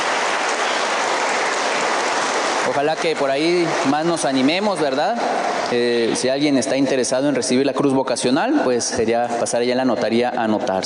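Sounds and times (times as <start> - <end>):
crowd applause: 0.0 - 6.2
speech: 2.8 - 10.8.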